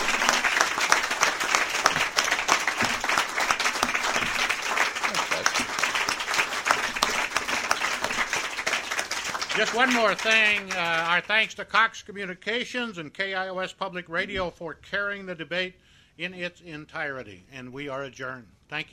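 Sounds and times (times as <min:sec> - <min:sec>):
audience applause after a debate: 0:00.0 - 0:11.3
speech: 0:09.7 - 0:18.9.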